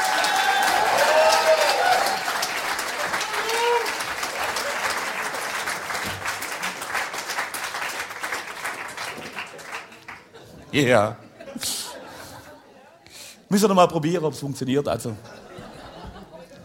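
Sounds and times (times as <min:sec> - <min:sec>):
audience applause: 0:00.0 - 0:10.4
laughter: 0:10.2 - 0:13.0, 0:15.2 - 0:16.6
speech: 0:10.8 - 0:11.7, 0:13.5 - 0:15.3.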